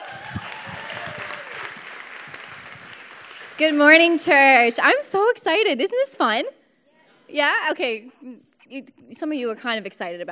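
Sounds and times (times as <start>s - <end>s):
round of applause: 0.0s - 4.4s
speech: 3.6s - 6.6s, 7.3s - 10.2s.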